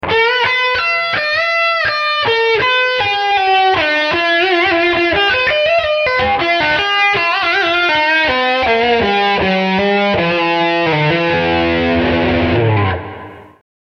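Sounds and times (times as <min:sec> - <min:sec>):
electric guitar solo lick on rear humbucker: 0:00.0 - 0:13.6.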